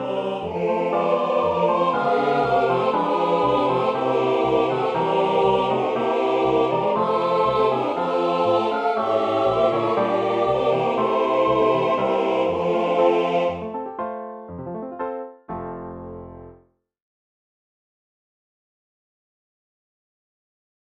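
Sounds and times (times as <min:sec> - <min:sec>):
ensemble singing Gypsy songs tutti: 0:00.0 - 0:13.8.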